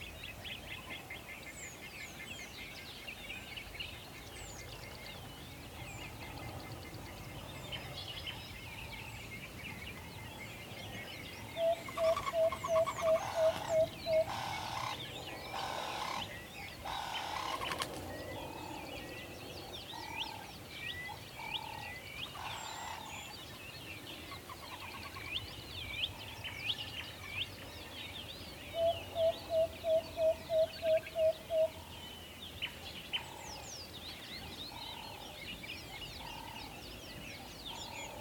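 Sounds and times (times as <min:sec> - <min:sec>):
chirping songbirds: 0:00.0 - 0:38.2
owl tooting: 0:11.6 - 0:17.7.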